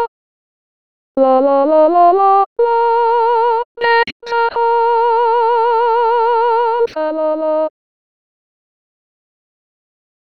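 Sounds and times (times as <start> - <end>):
soprano singing a Christmas carol: 1.2 - 7.7.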